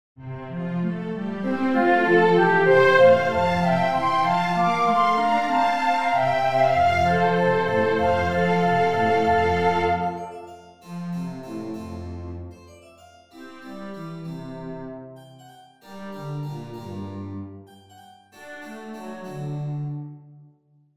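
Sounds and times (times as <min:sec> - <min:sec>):
harp concerto: 0:00.9 - 0:12.2.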